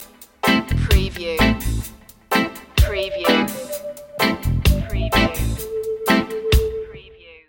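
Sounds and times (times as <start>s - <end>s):
reggae love stinger: 0.4s - 7.0s.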